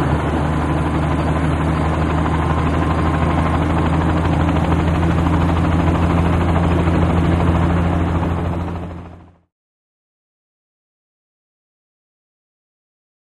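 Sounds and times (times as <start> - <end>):
Jet Ranger helicopter starting up: 0.0 - 9.5.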